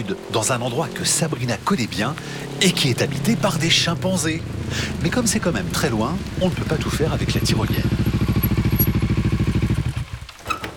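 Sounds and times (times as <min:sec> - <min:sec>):
speech: 0:00.0 - 0:08.1
motorcycle with sidecar engine puttering: 0:04.2 - 0:10.7
faint squeaks and rattles: 0:10.2 - 0:10.7.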